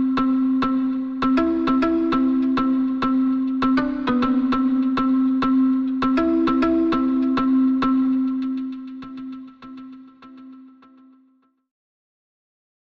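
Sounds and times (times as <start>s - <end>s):
chill guitar loop: 0.1s - 9.8s.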